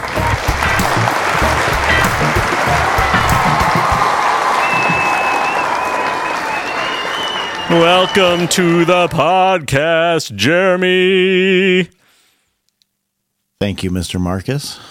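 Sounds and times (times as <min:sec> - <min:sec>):
audience applause welcoming a podcast guest: 0:00.0 - 0:09.3
speech: 0:07.7 - 0:12.0, 0:13.6 - 0:14.8.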